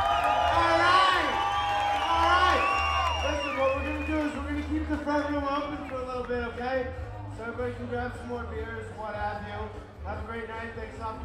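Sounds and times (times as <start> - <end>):
audience applauding: 0.0 - 6.0
speech: 7.6 - 11.2.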